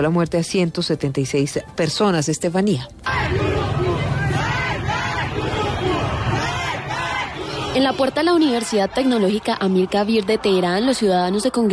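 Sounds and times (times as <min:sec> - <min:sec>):
speech: 0:00.0 - 0:03.7, 0:07.8 - 0:11.7
large protest crowd chanting slogans in unison: 0:03.0 - 0:11.1.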